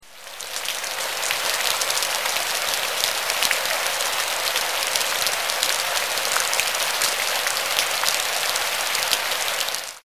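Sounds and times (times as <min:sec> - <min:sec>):
rain: 0:00.0 - 0:10.0.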